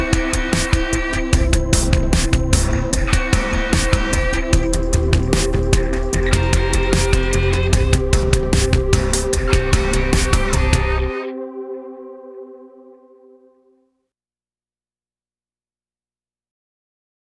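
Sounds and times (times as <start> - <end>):
industrial music: 0.0 - 12.6.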